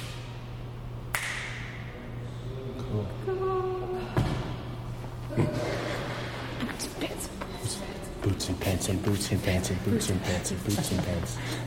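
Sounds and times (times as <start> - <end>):
low steady hum in an exhibit hall: 0.0 - 11.6
finger snap echoing in exhibit hall: 1.1 - 1.8
speech: 8.4 - 11.6.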